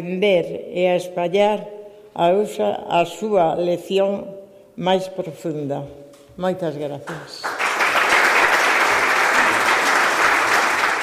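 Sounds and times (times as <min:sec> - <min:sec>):
speech: 0:00.0 - 0:07.6
crowd clapping in hall: 0:07.1 - 0:11.0.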